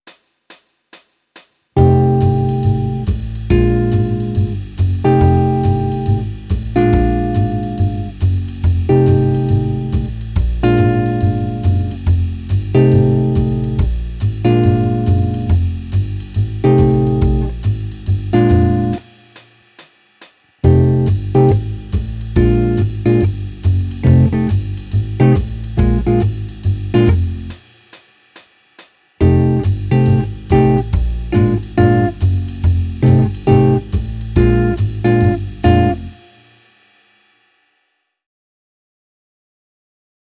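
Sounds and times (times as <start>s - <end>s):
jazz music: 1.8s - 19.2s, 20.6s - 27.6s, 29.2s - 36.3s.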